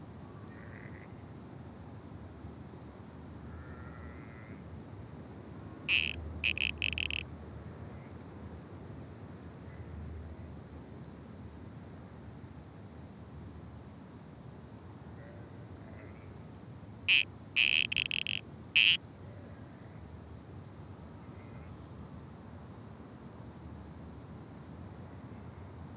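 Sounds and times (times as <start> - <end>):
spotted grass frog calling in Australia: 5.9 - 7.2, 17.1 - 19.0.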